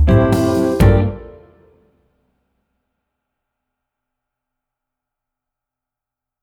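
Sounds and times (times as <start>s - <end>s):
clarinet playing: 0.1s - 1.7s.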